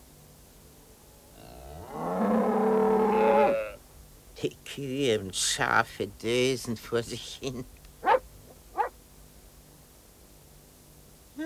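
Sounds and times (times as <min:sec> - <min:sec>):
quiet steady hiss: 0:00.0 - 0:11.4
speech: 0:04.4 - 0:07.8
dog barking: 0:08.0 - 0:09.0.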